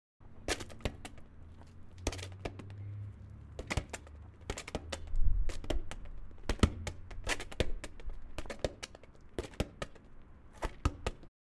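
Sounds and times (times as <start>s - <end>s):
soccer ball hitting a wall: 0.4s - 1.3s, 3.6s - 11.3s.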